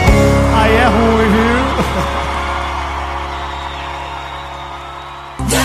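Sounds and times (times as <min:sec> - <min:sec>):
football fans cheering and whooping: 0:00.1 - 0:05.6.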